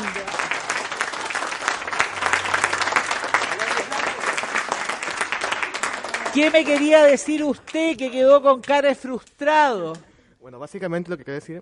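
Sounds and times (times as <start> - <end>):
students applauding: 0.0 - 8.0
speech: 6.4 - 11.6.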